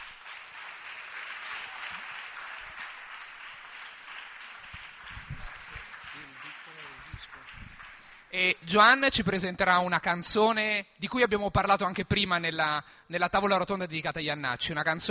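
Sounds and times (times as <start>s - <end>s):
audience applause: 0.0s - 8.4s
speech: 8.3s - 15.1s.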